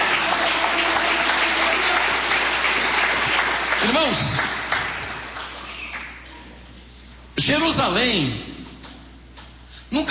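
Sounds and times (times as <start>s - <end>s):
audience applause: 0.0s - 6.2s
speech: 3.9s - 4.5s, 7.4s - 8.7s.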